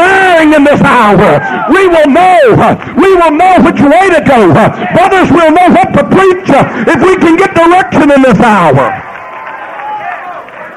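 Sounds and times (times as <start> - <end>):
speech: 0.6 - 9.1
audience shouting together: 1.0 - 5.6, 8.6 - 10.7.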